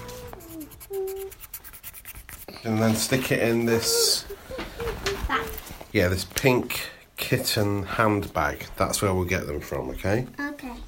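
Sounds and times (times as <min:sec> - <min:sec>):
rustling of torn paper scraps being handled: 0:00.0 - 0:06.0
speech: 0:02.6 - 0:04.1, 0:06.0 - 0:10.4.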